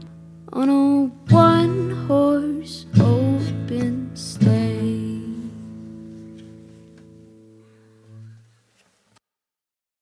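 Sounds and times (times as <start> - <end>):
Christmas song: 0.0 - 7.0.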